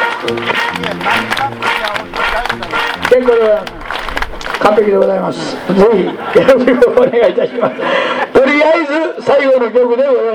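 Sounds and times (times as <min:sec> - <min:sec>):
song: 0:00.0 - 0:05.3
audience clapping along in rhythm to a song: 0:00.0 - 0:06.6
laughter: 0:00.0 - 0:09.0
speech: 0:00.2 - 0:03.8, 0:04.6 - 0:10.3.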